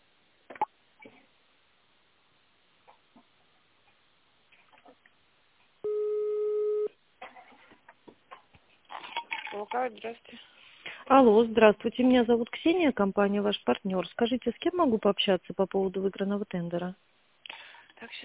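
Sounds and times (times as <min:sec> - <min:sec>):
telephone ringback tone while on hold: 0:05.8 - 0:06.9
speech: 0:09.6 - 0:10.5, 0:11.1 - 0:17.1.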